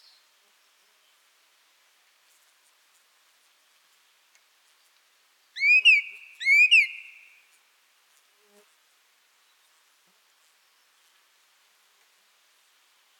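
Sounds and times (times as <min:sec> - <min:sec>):
song thrush singing: 0:05.6 - 0:07.4.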